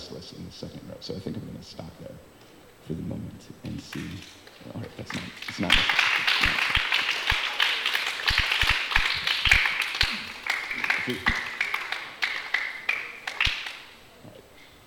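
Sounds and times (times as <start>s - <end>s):
speech: 0.2s - 6.8s, 11.1s - 11.5s
crowd clapping: 3.7s - 14.0s.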